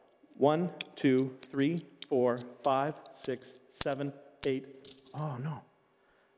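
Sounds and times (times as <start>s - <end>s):
person counting and talking: 0.4s - 5.8s
coins clinking while counted out by hand: 0.8s - 5.2s.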